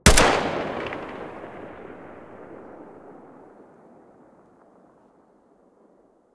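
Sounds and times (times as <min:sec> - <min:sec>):
Galil rifle muzzle gunshot: 0:00.0 - 0:03.9.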